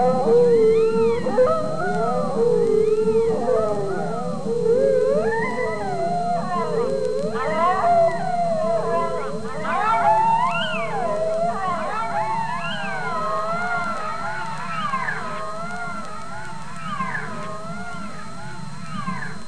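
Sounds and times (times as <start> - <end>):
long wolf howl: 0.0 - 19.4.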